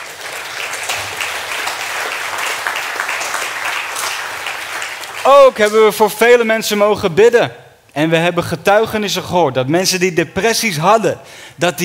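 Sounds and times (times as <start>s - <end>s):
audience applause: 0.0s - 5.9s
speech: 5.2s - 11.8s.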